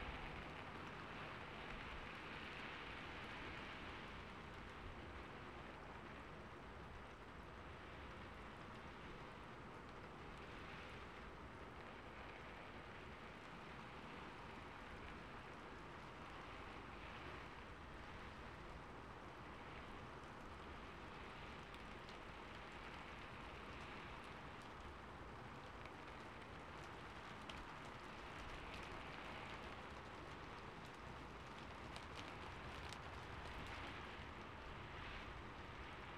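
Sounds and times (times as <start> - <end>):
rain on a rooftop: 0.0 - 36.1.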